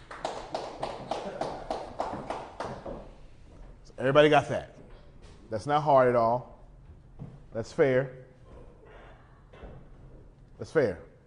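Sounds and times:
audience clapping: 0.0 - 3.1
speech: 4.0 - 4.7, 5.5 - 6.5, 7.6 - 8.2, 10.6 - 11.1.

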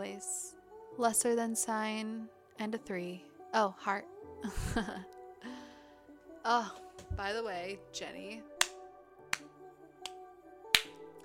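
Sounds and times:
speech: 0.0 - 0.4, 1.0 - 5.2, 6.4 - 8.5
hand clapping: 8.6 - 11.0.

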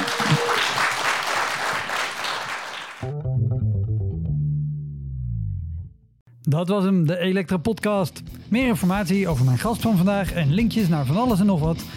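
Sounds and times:
crowd applause: 0.0 - 3.1
loud electronic tune with effects-laden synth tones: 3.0 - 5.9
speech: 6.5 - 11.9.

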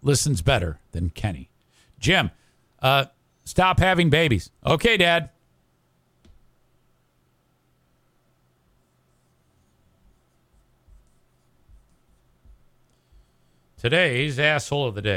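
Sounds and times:
speech: 0.0 - 5.4, 13.8 - 15.1
dry erase marker writing on a whiteboard: 8.8 - 13.6.

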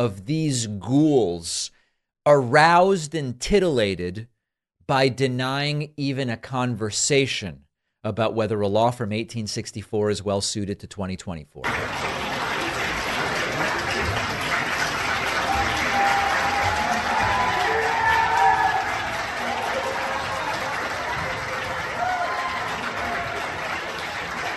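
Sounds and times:
speech: 0.0 - 4.3, 4.9 - 12.2
legislators applauding: 11.6 - 24.5.

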